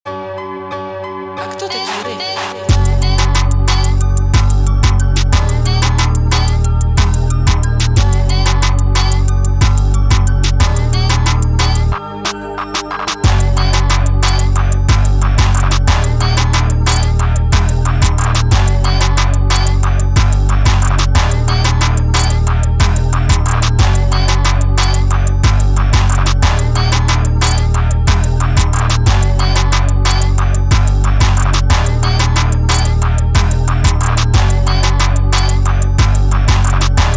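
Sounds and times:
jerk type beat: 0:01.8 - 0:37.1.

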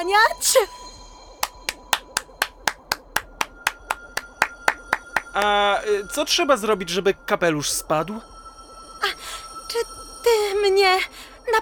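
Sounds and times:
speech: 0:00.0 - 0:00.8, 0:05.4 - 0:08.3, 0:09.7 - 0:11.6
faint steady hum: 0:00.0 - 0:11.6
sharp hand claps: 0:01.4 - 0:05.7.

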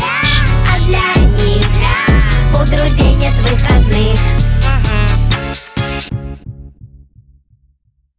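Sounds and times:
trap remix: 0:00.0 - 0:06.2.

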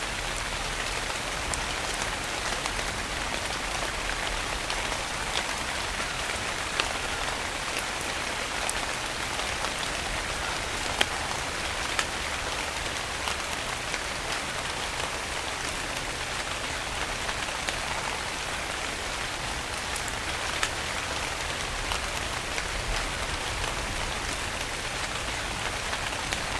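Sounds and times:
rain storm: 0:00.0 - 0:26.5.

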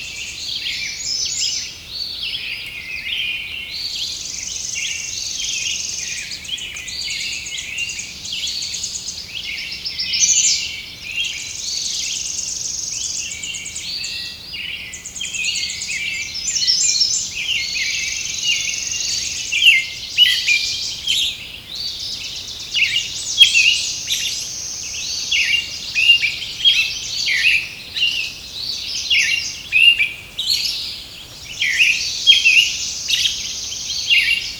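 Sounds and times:
songbirds singing in nature: 0:00.0 - 0:34.5.

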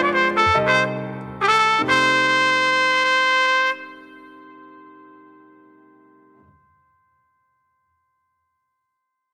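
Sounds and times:
hotel atmosphere music: 0:00.0 - 0:06.3.

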